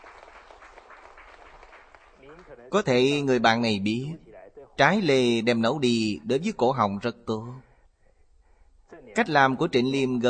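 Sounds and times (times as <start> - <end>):
audience applause welcoming one of its members: 0.0 - 2.9
speech: 2.5 - 4.2, 4.8 - 7.7, 9.2 - 10.2.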